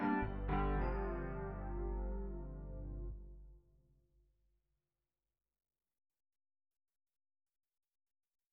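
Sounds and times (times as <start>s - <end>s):
Rhodes electric piano: 0.0s - 3.4s.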